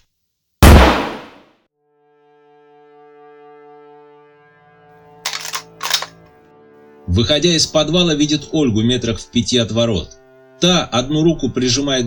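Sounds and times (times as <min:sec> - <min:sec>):
rifle shot: 0:00.6 - 0:01.4, 0:05.3 - 0:06.1
rifle bolt clacks as a man chambers a round: 0:05.3 - 0:06.2
speech: 0:07.1 - 0:12.0.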